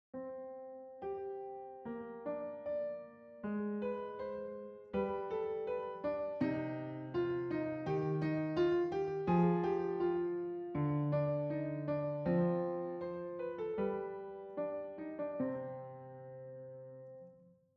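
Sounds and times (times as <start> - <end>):
piano: 0.1 - 17.7.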